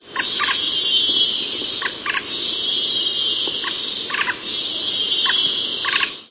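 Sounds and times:
woodpecker drumming steadily in the wild: 0.0s - 6.2s.

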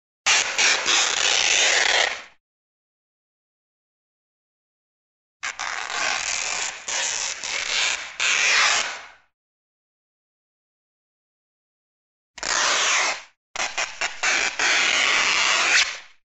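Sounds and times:
fabric tearing: 0.3s - 2.4s, 5.4s - 9.2s, 12.4s - 16.2s.

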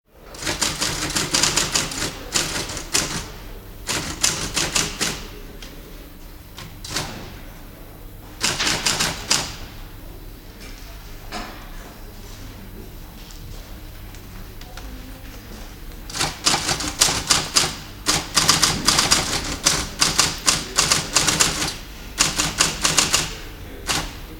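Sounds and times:
typewriter typing: 0.3s - 5.4s, 6.6s - 7.3s, 8.4s - 9.7s, 16.1s - 24.3s.

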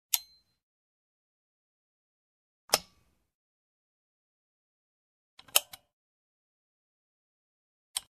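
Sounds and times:
various switches, toggles and buttons: 0.1s - 0.6s, 2.7s - 3.2s, 5.4s - 5.9s.

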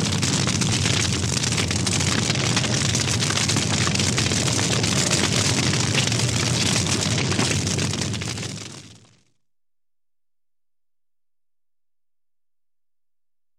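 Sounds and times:
raging fire: 0.0s - 9.1s.

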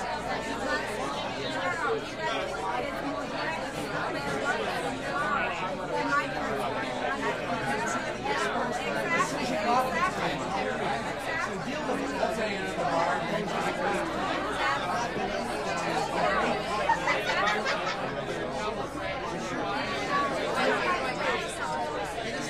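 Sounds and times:
crowd in a bar pub: 0.0s - 22.4s
laughter: 13.4s - 21.0s.

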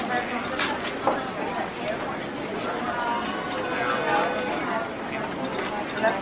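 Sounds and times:
office voices: 0.2s - 6.1s.

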